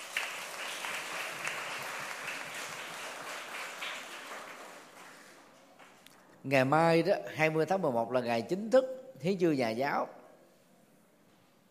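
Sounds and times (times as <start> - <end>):
children applauding: 0.0 - 6.0
speech: 6.4 - 10.2.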